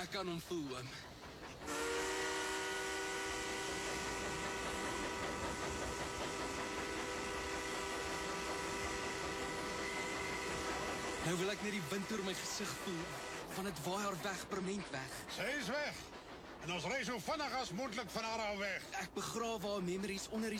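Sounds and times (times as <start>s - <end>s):
speech: 0.0s - 1.1s, 11.2s - 20.5s
steam train rumbling on rails: 0.0s - 20.5s
long multi-tone steam train whistle: 1.6s - 13.5s.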